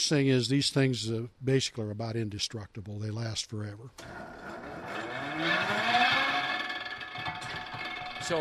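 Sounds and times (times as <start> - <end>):
speech: 0.0 - 4.7, 5.4 - 6.1
50-ton flywheel-driven machine droning whir and low rumble: 4.0 - 8.3
faint mechanical clatter: 5.6 - 8.3.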